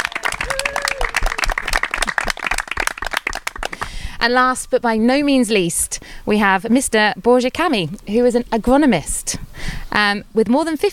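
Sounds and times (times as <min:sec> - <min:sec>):
audience clapping welcoming a guest: 0:00.0 - 0:03.9
speech: 0:04.2 - 0:10.9.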